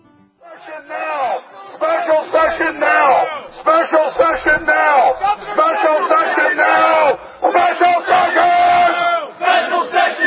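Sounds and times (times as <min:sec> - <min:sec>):
crowd chanting through a bullhorn: 0:00.5 - 0:10.2.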